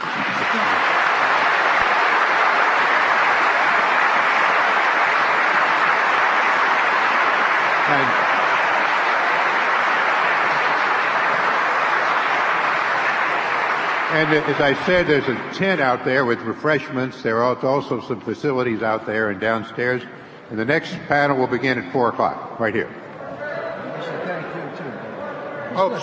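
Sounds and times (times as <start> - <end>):
audience applause: 0.0 - 16.5
speech: 14.2 - 23.0, 25.8 - 26.0.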